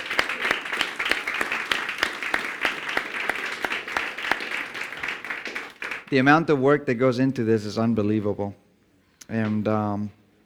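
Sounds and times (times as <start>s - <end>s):
audience applause: 0.0s - 6.2s
speech: 6.1s - 8.6s, 9.3s - 10.2s.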